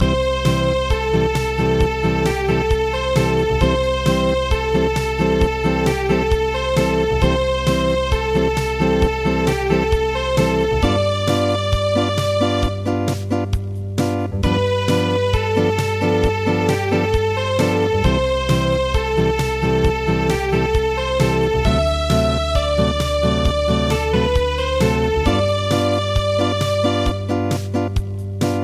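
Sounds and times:
acoustic music: 0:00.0 - 0:28.6.

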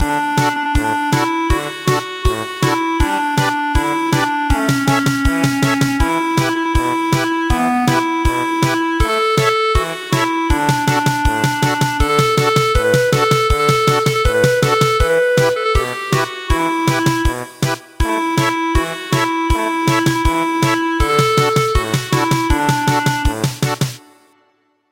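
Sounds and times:
German polka music: 0:00.0 - 0:24.2.

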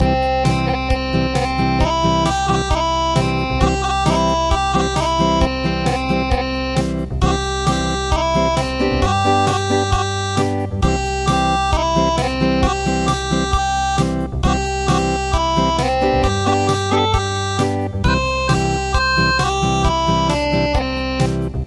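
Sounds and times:
acoustic music: 0:00.0 - 0:21.6.

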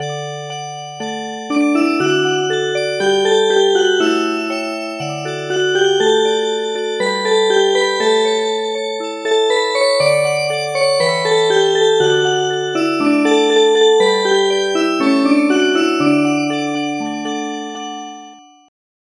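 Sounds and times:
music box: 0:00.0 - 0:18.7.

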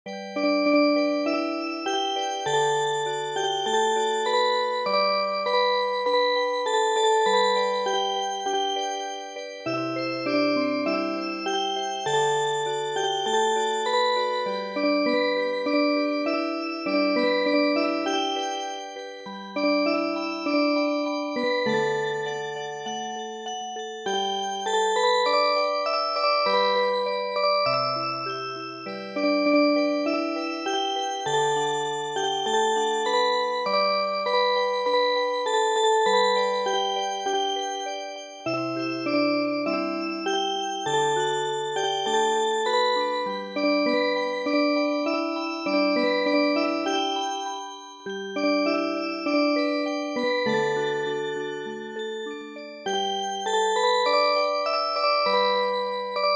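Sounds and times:
MIDI music box melody: 0:00.1 - 0:56.3.

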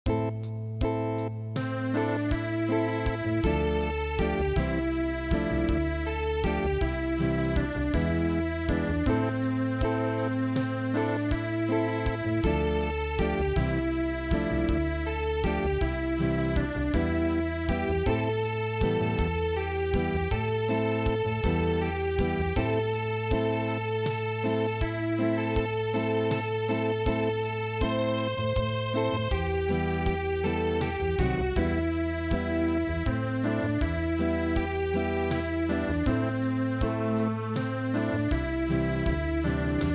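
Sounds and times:
traditional acoustic music: 0:00.1 - 0:39.9.

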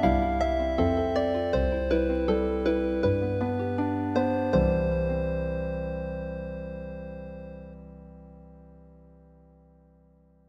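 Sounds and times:
healing harp piece: 0:00.0 - 0:08.2.

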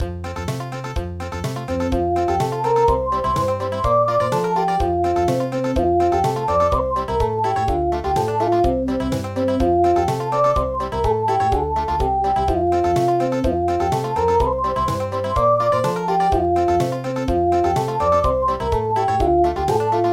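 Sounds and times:
country music: 0:00.0 - 0:20.1.

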